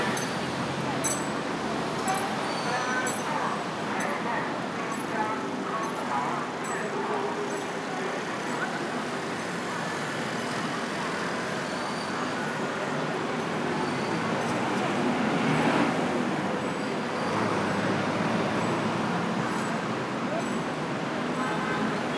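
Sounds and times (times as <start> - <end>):
traffic noise on Jiang Ning Lu: 0.0 - 22.1
voices murmuring: 0.0 - 22.1.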